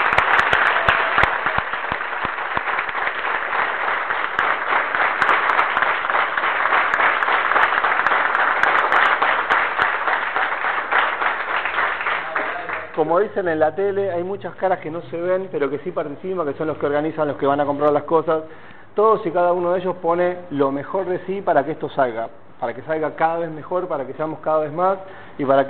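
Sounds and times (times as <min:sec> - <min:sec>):
audience applause: 0:00.0 - 0:13.1
speech: 0:13.1 - 0:25.6.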